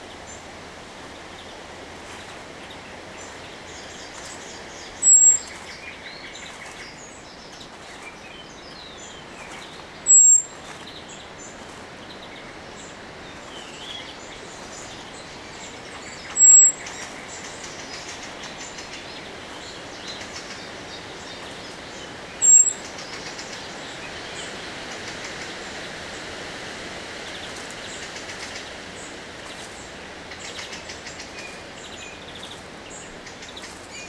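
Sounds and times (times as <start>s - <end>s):
faint twittering of other birds: 0.0s - 34.0s
common blackbird thin high whistle: 5.0s - 5.6s, 10.0s - 10.5s, 16.3s - 16.8s, 22.4s - 22.8s.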